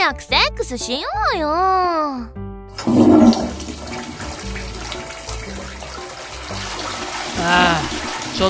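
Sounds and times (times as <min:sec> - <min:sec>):
speech: 0:00.1 - 0:03.4, 0:07.4 - 0:08.4
toilet flushing: 0:02.7 - 0:08.4.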